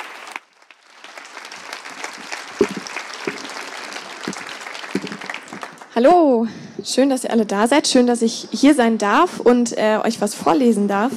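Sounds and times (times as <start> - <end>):
audience applauding a poet at a poetry reading: 0.0 - 6.0
speech: 6.0 - 11.1.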